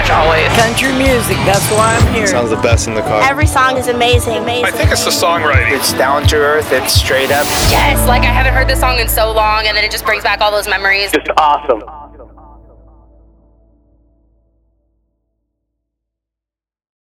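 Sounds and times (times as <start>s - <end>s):
traditional country music: 0.0s - 13.3s.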